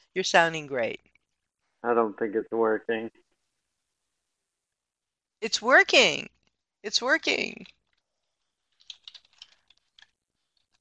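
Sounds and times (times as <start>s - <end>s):
speech: 0.2s - 1.1s, 1.8s - 3.2s, 5.4s - 7.8s
typing on a computer keyboard: 8.7s - 10.8s.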